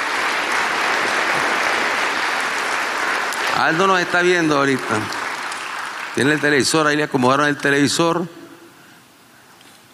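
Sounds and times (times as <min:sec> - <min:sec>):
audience applause: 0:00.0 - 0:07.1
speech: 0:03.6 - 0:05.2, 0:06.2 - 0:08.4.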